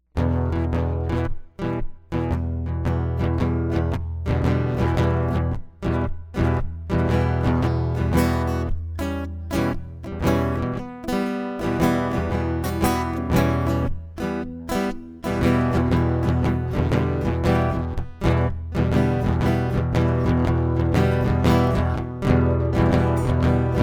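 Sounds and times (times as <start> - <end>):
acoustic music: 0.2 - 23.8.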